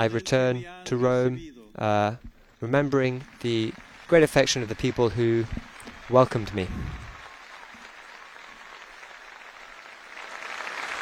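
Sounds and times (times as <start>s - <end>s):
speech: 0.0s - 7.0s
crowd applauding: 2.4s - 11.0s.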